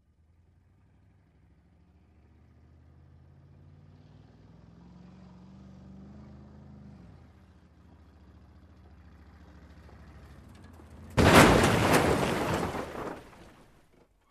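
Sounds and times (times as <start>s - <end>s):
car approaching: 0.2s - 11.2s
car crash: 10.6s - 14.1s.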